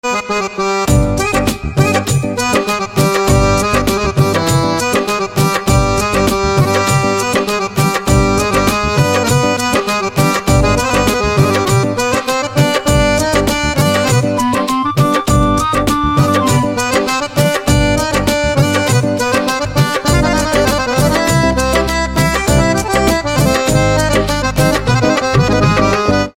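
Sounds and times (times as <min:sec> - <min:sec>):
harmonium instrumental ringtone: 0:00.0 - 0:26.3.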